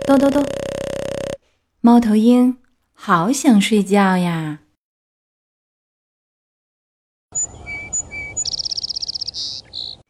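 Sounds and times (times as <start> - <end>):
speech: 0.1 - 0.6, 1.8 - 4.6
skylark chirping: 7.4 - 10.0.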